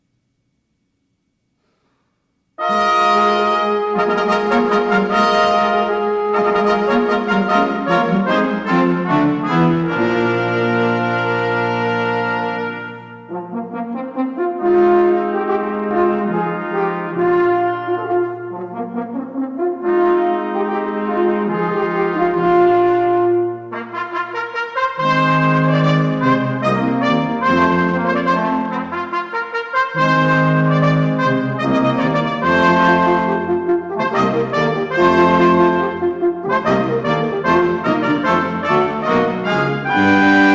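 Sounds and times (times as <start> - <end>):
fanfare: 2.6 - 40.5.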